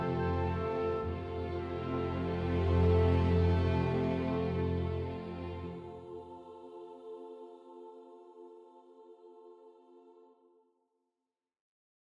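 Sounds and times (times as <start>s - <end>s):
strategy game ambient music: 0.0s - 7.8s.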